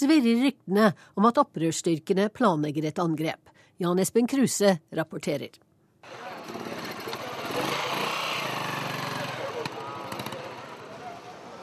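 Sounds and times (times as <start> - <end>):
speech: 0.0 - 6.3
people outdoors in Juba city centre: 0.0 - 11.6
city centre street traffic in Juba: 6.0 - 11.6.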